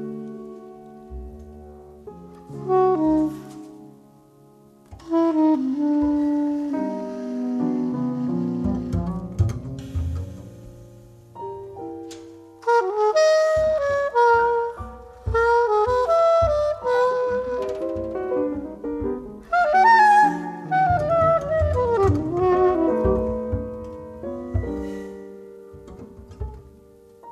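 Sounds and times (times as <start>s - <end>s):
band interlude: 2.4s - 4.0s, 4.9s - 10.5s, 12.1s - 25.0s.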